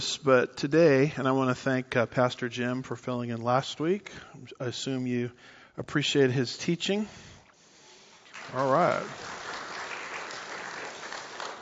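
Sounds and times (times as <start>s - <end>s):
speech: 0.0s - 7.3s, 8.5s - 9.3s
church congregation applauding the pastor: 8.1s - 11.6s.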